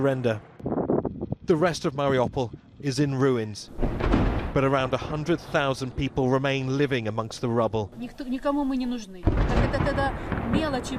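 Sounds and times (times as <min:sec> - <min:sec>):
speech: 0:00.0 - 0:00.5, 0:01.5 - 0:10.9
artillery shell exploding in Mariupol: 0:03.7 - 0:06.3, 0:09.2 - 0:10.9.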